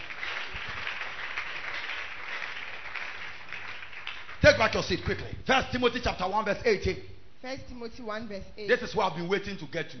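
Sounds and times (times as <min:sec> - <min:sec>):
crowd clapping hands: 0:00.0 - 0:05.3
speech: 0:04.4 - 0:09.9.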